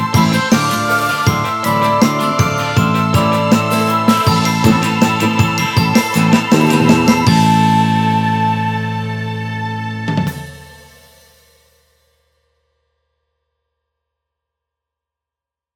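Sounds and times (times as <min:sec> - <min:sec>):
orchestra: 0:00.0 - 0:10.9.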